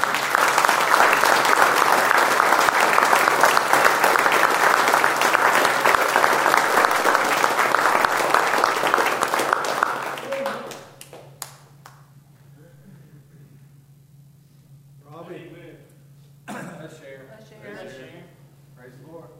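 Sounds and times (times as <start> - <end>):
audience clapping: 0.0 - 12.2.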